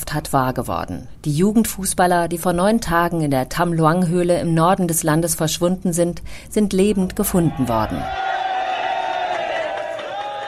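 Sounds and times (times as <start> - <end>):
speech: 0.1 - 8.3
crowd cheering and jubilation: 7.3 - 10.4
whoops and shouts: 7.5 - 10.4.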